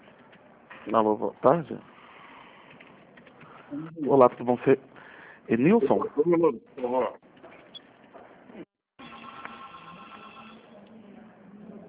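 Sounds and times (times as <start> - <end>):
speech: 0.8 - 1.9, 3.7 - 4.9, 5.5 - 7.2
landline telephone ringing: 9.0 - 10.7.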